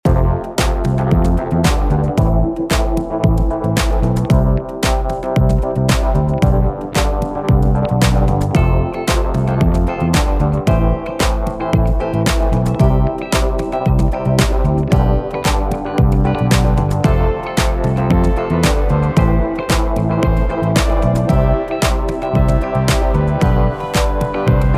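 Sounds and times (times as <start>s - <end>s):
113 bpm beats: 0.0s - 24.7s.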